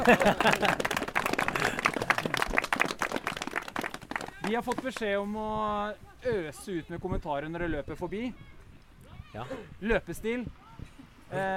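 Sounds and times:
speech: 0.0s - 0.9s, 4.5s - 8.5s, 9.3s - 10.6s, 11.3s - 11.5s
laughter: 0.0s - 2.5s
audience applause: 0.0s - 5.1s.

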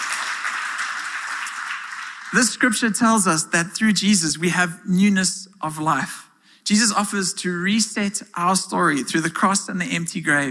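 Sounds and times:
crowd clapping: 0.0s - 2.9s
speech: 2.3s - 10.4s.

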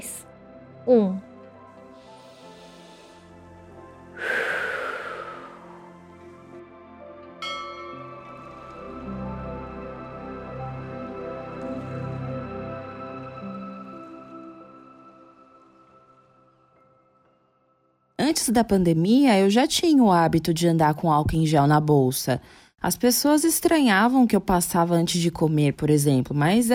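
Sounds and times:
soft sustained musical drone: 0.0s - 17.8s
speech: 0.8s - 1.3s, 18.5s - 26.7s
deep breath in and out during a guided breathing exercise: 1.8s - 6.6s.

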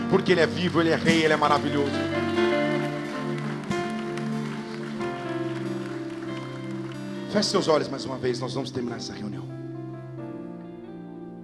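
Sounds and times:
audience clapping: 0.0s - 8.0s
sustained keyboard chords: 0.0s - 11.4s
speech: 0.1s - 2.4s, 7.3s - 9.5s.

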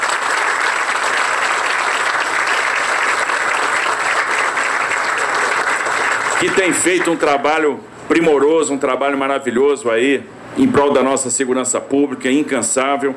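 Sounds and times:
crowd applauding: 0.0s - 7.3s
speech: 6.4s - 13.1s.

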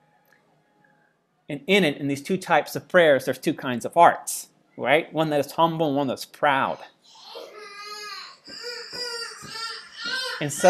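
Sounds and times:
speech: 1.5s - 7.2s, 10.4s - 10.6s
young child crying: 7.1s - 10.6s.

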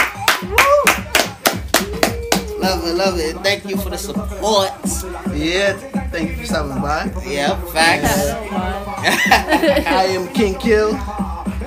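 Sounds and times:
hand clapping: 0.0s - 2.6s
speech: 2.6s - 11.2s
laughter: 8.8s - 10.3s.

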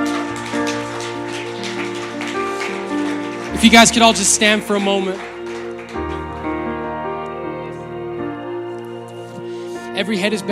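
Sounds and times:
audience clapping hands: 0.0s - 7.3s
speech: 3.6s - 5.3s, 10.1s - 10.5s.

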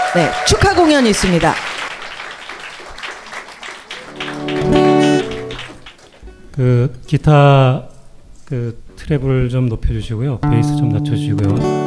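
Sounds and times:
audience applause: 0.0s - 6.3s
speech: 0.2s - 1.7s, 6.6s - 7.9s, 8.5s - 11.8s.

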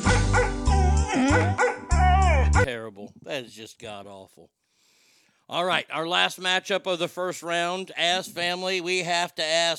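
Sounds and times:
dogs barking, yipping and whining: 0.1s - 2.7s
speech: 3.4s - 4.6s, 5.5s - 9.7s.

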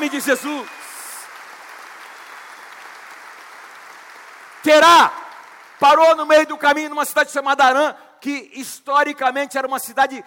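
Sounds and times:
speech: 0.0s - 0.8s, 4.6s - 5.2s, 5.8s - 10.2s
audience applauding: 0.0s - 6.3s.

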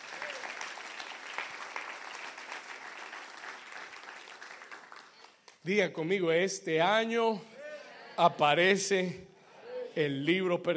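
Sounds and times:
audience applause: 0.0s - 5.6s
speech: 5.6s - 7.5s, 8.2s - 9.3s, 10.0s - 10.7s.

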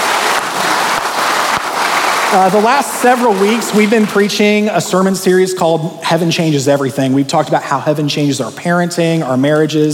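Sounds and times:
audience clapping: 0.0s - 5.1s
speech: 2.3s - 9.9s.

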